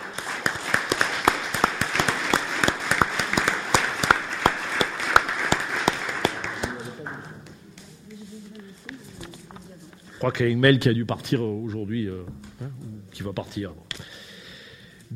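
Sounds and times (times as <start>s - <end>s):
audience applause: 0.0s - 7.4s
speech: 10.2s - 13.9s.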